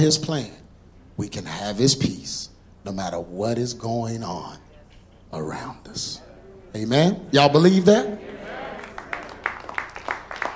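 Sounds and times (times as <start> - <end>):
speech: 0.0 - 0.6, 1.2 - 4.6, 5.3 - 8.6
murmur of voices in a reverberant room: 4.2 - 9.6
crowd clapping hands in steady rhythm in a reverberant room: 8.7 - 10.5.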